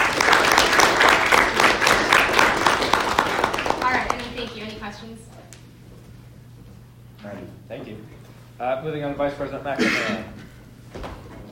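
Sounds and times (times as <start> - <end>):
audience applause: 0.0 - 4.8
speech: 8.8 - 10.3.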